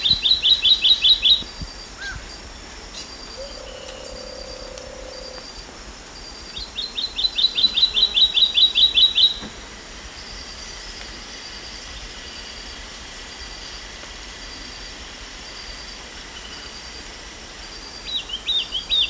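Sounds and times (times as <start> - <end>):
Olivaceous Greenlet calling in Ecuador: 0.0 - 2.3, 2.9 - 5.4, 6.8 - 9.5.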